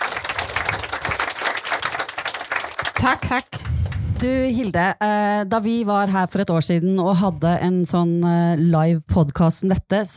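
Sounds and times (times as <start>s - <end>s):
audience applause at a live event: 0.0s - 4.0s
speech: 3.0s - 3.6s, 4.2s - 10.1s.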